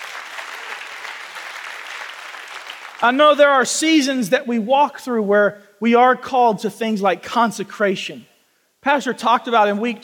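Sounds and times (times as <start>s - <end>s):
audience clapping: 0.0s - 3.2s
speech: 3.0s - 10.0s.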